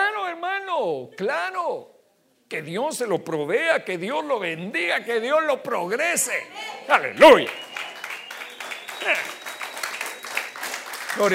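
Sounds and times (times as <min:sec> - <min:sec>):
speech: 0:00.8 - 0:07.6, 0:09.0 - 0:09.4, 0:11.2 - 0:11.3
crowd applauding: 0:07.2 - 0:11.3.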